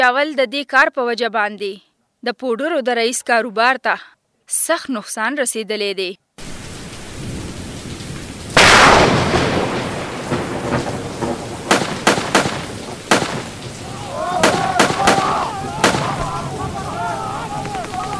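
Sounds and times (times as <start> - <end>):
speech: 0.0 - 6.2
gunfire from men shooting from a shop across the street: 8.6 - 13.7, 14.4 - 16.5
laughter: 13.9 - 18.1.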